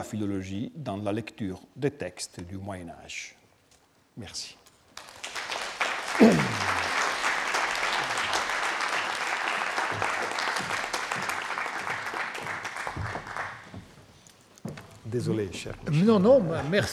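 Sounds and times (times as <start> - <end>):
speech: 0.0 - 3.4, 4.2 - 4.6, 6.2 - 6.9, 15.1 - 16.9
audience applause after a lecture: 5.0 - 13.8.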